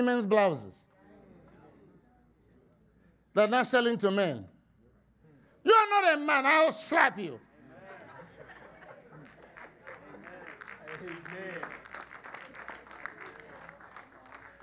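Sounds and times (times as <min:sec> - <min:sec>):
speech: 0:00.0 - 0:00.9, 0:03.4 - 0:04.5, 0:05.6 - 0:07.5
laughter: 0:07.6 - 0:11.8
scattered half-hearted clapping from a crowd: 0:08.8 - 0:14.6.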